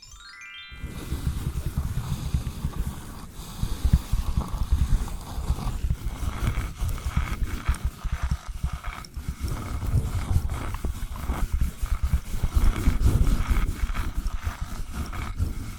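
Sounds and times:
rising chirp of tones: 0:00.0 - 0:00.8
invisible tapping, scratching and tracing: 0:00.9 - 0:15.7.

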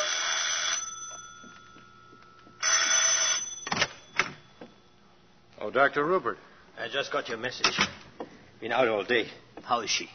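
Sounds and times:
telephone bell ringing: 0:00.0 - 0:04.6
speech: 0:05.7 - 0:08.0, 0:08.6 - 0:10.1.

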